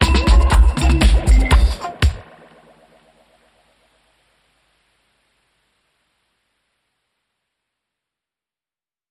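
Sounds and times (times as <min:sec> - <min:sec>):
music sting: 0:00.0 - 0:03.5.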